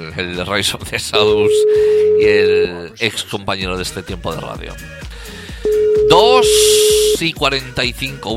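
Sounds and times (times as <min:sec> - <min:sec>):
speech: 0:00.0 - 0:05.1, 0:06.1 - 0:08.3
steady single-pitched telephone ringing tone: 0:01.4 - 0:02.7, 0:05.7 - 0:07.2.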